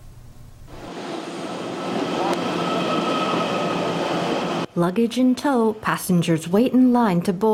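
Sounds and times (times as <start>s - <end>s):
Puyuma express train: 0.7s - 4.7s
speech: 4.8s - 7.5s.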